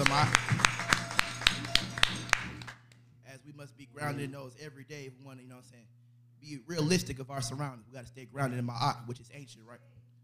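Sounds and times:
audience hand clapping: 0.0 - 2.8
speech: 0.2 - 0.5, 4.1 - 10.0.

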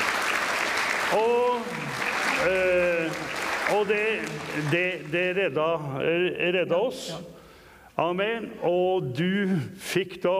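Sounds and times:
audience applause: 0.0 - 5.4
speech: 1.1 - 2.7, 3.7 - 7.4, 8.0 - 10.3.

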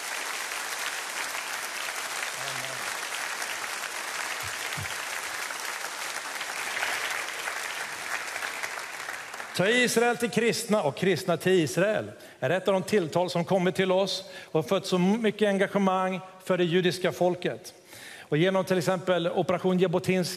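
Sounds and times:
warm audience applause: 0.0 - 9.6
speech: 9.6 - 20.3.

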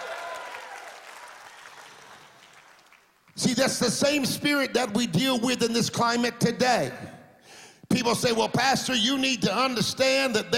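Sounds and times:
church congregation applauding and cheering during a sermon: 0.0 - 4.2
speech: 3.5 - 7.1, 7.9 - 10.5.

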